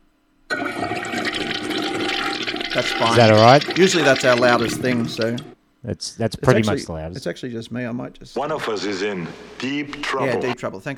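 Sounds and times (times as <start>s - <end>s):
quiet hum: 0.0s - 10.9s
toilet flushing: 0.5s - 5.6s
speech: 2.8s - 10.9s.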